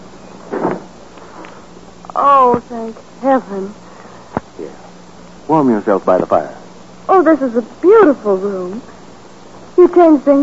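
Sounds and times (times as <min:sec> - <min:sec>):
door closing thump: 0:00.5 - 0:00.9
speech: 0:02.2 - 0:03.8, 0:04.6 - 0:04.9, 0:05.5 - 0:08.9, 0:09.8 - 0:10.4.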